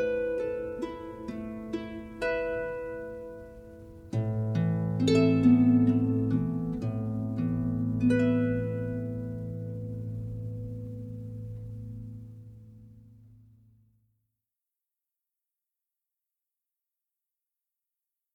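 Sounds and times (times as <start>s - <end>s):
Celtic harp: 0.0s - 13.5s.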